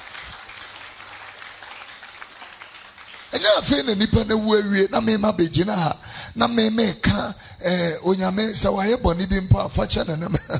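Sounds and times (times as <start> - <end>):
crowd clapping hands: 0.0 - 4.4
speech: 3.4 - 10.5.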